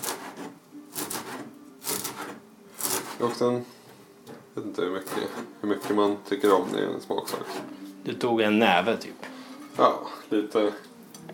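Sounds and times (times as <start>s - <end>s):
knife chopping dill: 0.0s - 3.4s, 5.0s - 7.7s
speech: 3.2s - 3.8s, 4.6s - 10.9s.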